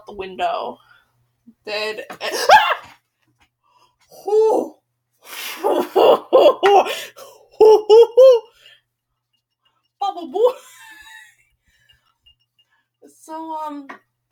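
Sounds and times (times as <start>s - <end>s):
speech: 0.1s - 0.9s, 1.6s - 2.9s, 4.1s - 4.8s, 5.6s - 8.5s, 10.0s - 10.8s, 13.0s - 14.2s
person screaming: 7.6s - 8.5s.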